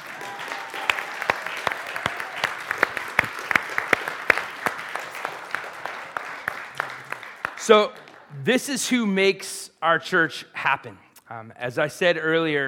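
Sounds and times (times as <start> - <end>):
audience clapping: 0.0 - 8.4
speech: 7.7 - 12.6.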